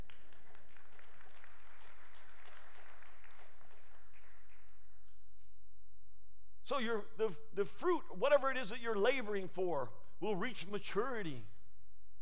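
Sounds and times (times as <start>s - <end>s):
audience clapping: 0.0s - 5.4s
speech: 6.7s - 11.5s.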